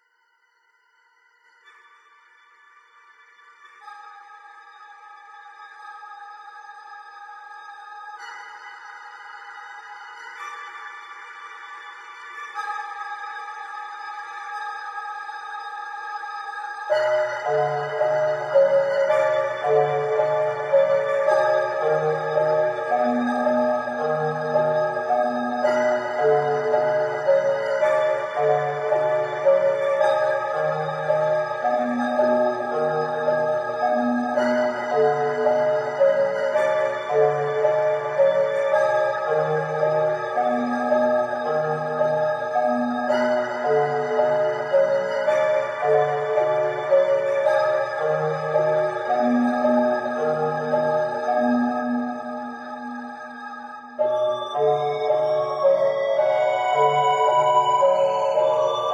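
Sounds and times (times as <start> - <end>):
ambient menu music: 16.9 - 58.9.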